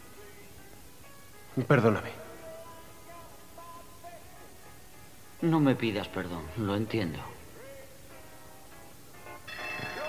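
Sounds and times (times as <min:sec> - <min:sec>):
speech: 0:01.6 - 0:02.2, 0:05.4 - 0:07.3
armory alarm bell ringing: 0:09.5 - 0:10.0.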